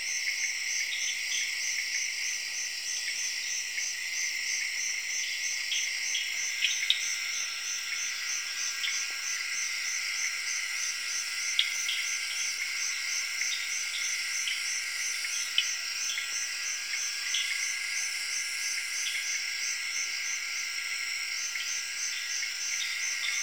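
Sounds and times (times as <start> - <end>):
cricket chorus trilling in the jungle in Zaire: 0.0 - 23.4.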